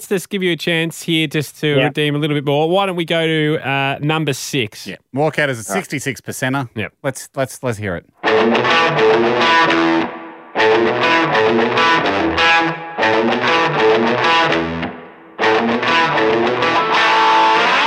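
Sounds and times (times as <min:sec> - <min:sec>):
speech: 0:00.0 - 0:10.2, 0:10.8 - 0:14.2
loud distorted Fender electric guitar chords: 0:08.2 - 0:17.8.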